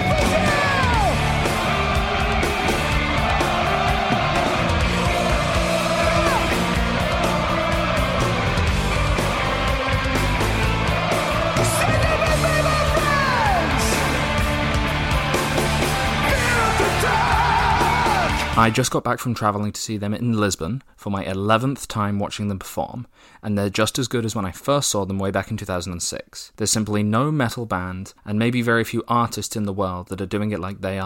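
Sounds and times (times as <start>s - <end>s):
live concert crowd cheering and yelling at Rock in Rio: 0.0s - 18.6s
speech: 18.6s - 31.0s.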